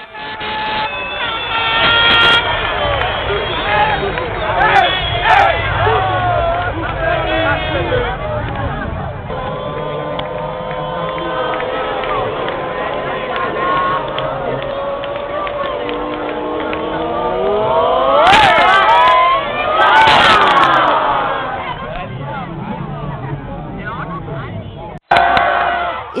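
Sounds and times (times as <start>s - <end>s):
crowd cheering a football goal: 0.0s - 26.1s
horns blaring: 0.0s - 26.1s.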